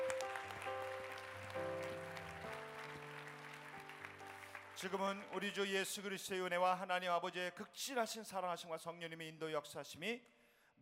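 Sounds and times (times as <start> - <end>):
audience applause: 0.0 - 5.6
speech: 4.8 - 10.8.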